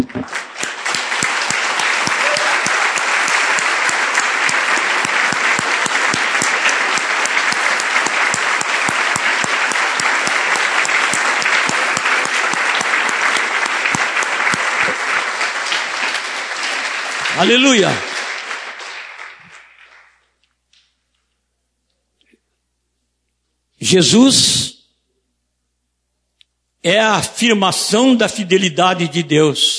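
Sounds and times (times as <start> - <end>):
audience applauding: 0.0 - 20.4
speech: 17.4 - 18.1, 23.9 - 24.7, 26.8 - 29.7.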